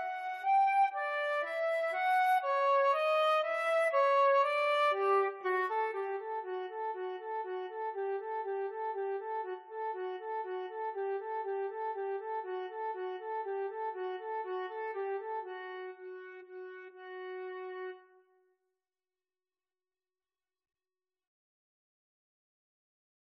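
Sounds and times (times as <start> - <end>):
flute duet at exam speed: 0.0 - 18.1.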